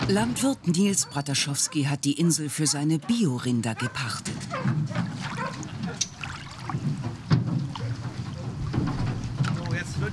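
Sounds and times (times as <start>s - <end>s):
boat moving across the water: 0.0s - 10.1s
speech: 0.1s - 5.1s
water splashing and lapping: 3.8s - 10.1s.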